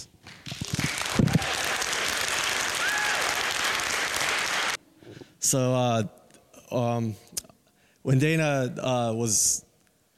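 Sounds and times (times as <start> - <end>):
standing audience applause: 0.5 - 4.8
speech: 5.5 - 7.4, 8.0 - 9.7.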